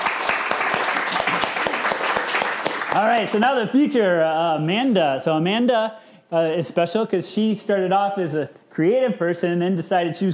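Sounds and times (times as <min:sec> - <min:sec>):
crowd applause: 0:00.0 - 0:03.4
speech: 0:02.9 - 0:10.3.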